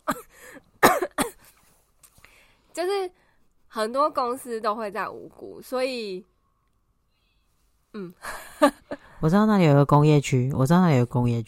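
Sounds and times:
person coughing: 0:00.0 - 0:01.6
speech: 0:02.8 - 0:03.2, 0:03.8 - 0:06.3, 0:07.9 - 0:11.4.

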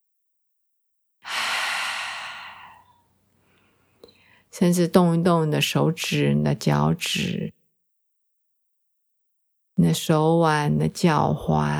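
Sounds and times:
sighing breath out in a relaxation exercise: 0:01.2 - 0:02.9
speech: 0:04.0 - 0:07.6, 0:09.8 - 0:11.7.

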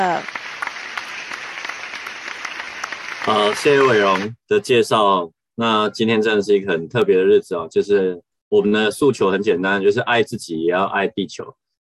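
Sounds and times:
crowd applause welcoming a speaker at an event: 0:00.0 - 0:04.3
speech: 0:03.3 - 0:11.8.

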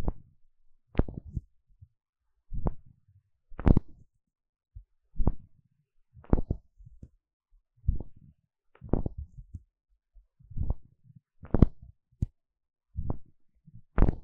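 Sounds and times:
ear scratching and tapping: 0:01.0 - 0:01.5, 0:02.6 - 0:02.9, 0:03.6 - 0:04.0, 0:05.2 - 0:05.5, 0:06.2 - 0:07.1, 0:07.9 - 0:09.6, 0:10.6 - 0:12.3, 0:13.0 - 0:13.3, 0:13.9 - 0:14.2.

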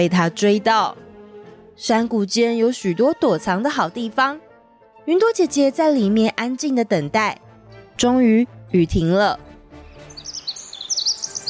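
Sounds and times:
speech: 0:00.0 - 0:01.0, 0:01.8 - 0:04.4, 0:05.0 - 0:07.4, 0:08.0 - 0:09.4
small birds chirping: 0:09.9 - 0:11.4.

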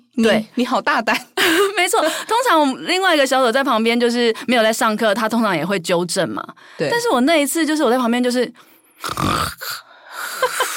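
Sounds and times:
speech: 0:00.2 - 0:10.6
quieter breathy noises: 0:08.9 - 0:10.4
voice imitating loud snoring: 0:09.0 - 0:09.9.

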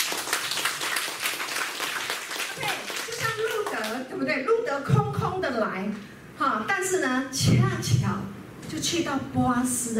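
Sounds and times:
applause: 0:00.0 - 0:04.0
speech: 0:03.9 - 0:09.9.

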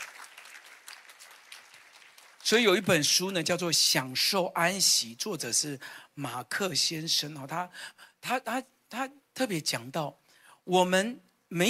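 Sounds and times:
audience clapping hands: 0:00.0 - 0:03.1
speech: 0:02.5 - 0:11.6.

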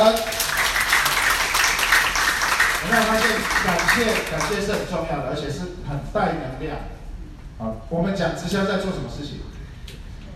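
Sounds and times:
audience applause: 0:00.0 - 0:04.8
speech: 0:02.9 - 0:07.0, 0:07.6 - 0:09.6.

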